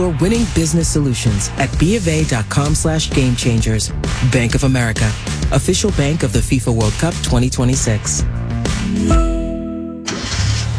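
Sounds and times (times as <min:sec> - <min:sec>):
speech: 0:00.0 - 0:08.4, 0:09.0 - 0:09.3
car engine starting and idling for a first solo drive: 0:10.0 - 0:10.7.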